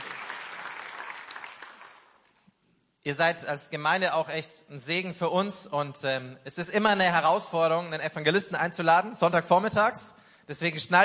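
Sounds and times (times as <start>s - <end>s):
audience applause: 0.0s - 2.2s
speech: 3.0s - 11.0s.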